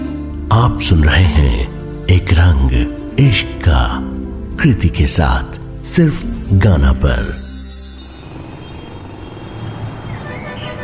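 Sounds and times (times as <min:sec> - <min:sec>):
speech: 0:00.6 - 0:07.4
car and truck engines on a busy city street: 0:06.3 - 0:10.8.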